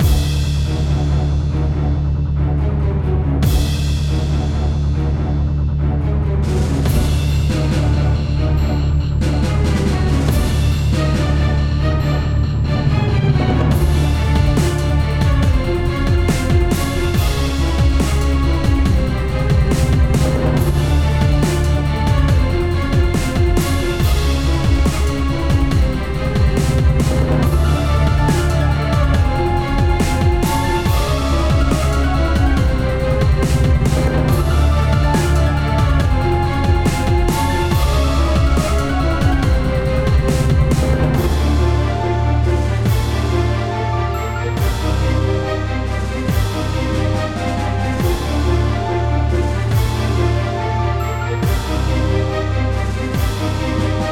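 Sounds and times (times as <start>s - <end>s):
looped battle music: 0.0s - 54.1s.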